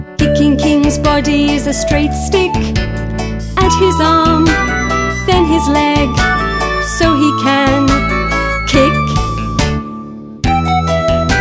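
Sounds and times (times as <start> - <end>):
song: 0.2 - 11.3.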